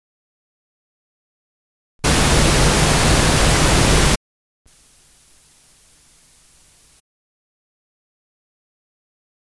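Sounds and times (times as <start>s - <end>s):
pink noise alternating in phase and antiphase at 0 dB: 2.0s - 7.0s.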